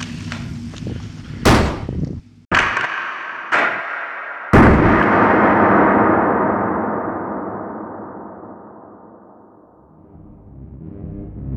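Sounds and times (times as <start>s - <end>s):
gunfire in a tense chase: 1.5s - 9.5s.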